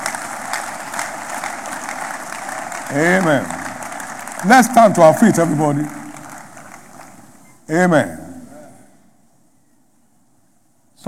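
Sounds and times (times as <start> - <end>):
audience clapping: 0.0 - 7.5
speech: 2.9 - 3.6, 4.4 - 6.0, 7.7 - 8.2.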